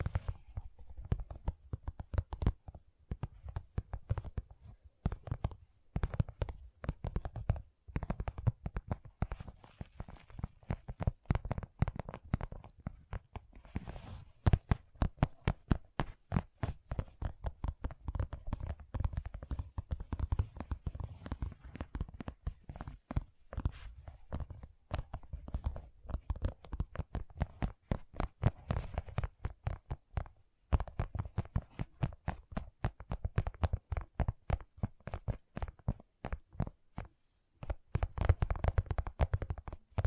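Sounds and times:
soft tapping: 0:00.0 - 0:40.0.

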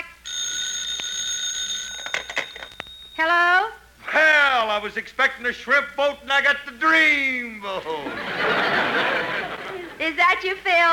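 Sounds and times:
telephone ringing: 0:00.2 - 0:03.5
speech: 0:04.8 - 0:09.4, 0:10.0 - 0:10.9
laughter: 0:07.8 - 0:10.1.

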